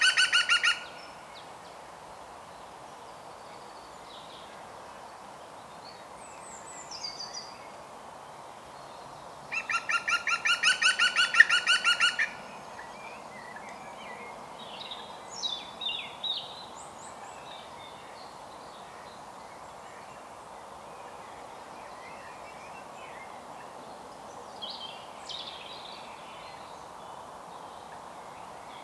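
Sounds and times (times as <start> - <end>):
European green woodpecker Picus viridis laughing calls: 0.0 - 0.8, 9.6 - 12.4.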